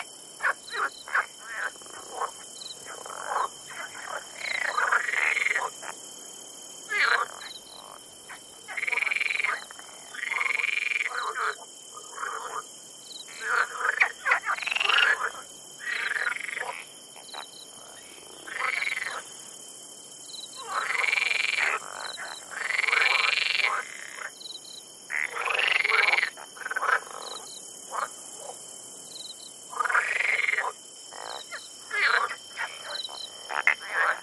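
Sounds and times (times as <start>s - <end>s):
Rana arboricola frogs croaking: 0.0s - 34.2s.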